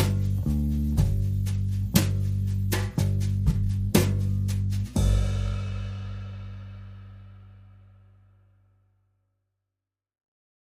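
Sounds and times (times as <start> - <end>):
drums: 0.0 - 7.8
bass: 0.0 - 9.2.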